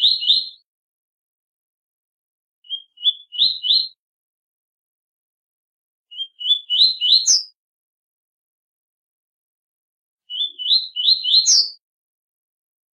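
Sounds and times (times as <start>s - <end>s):
double-collared seedeater singing rising whistled phrases: 0.0s - 0.7s, 2.6s - 4.0s, 6.1s - 7.6s, 10.3s - 11.8s.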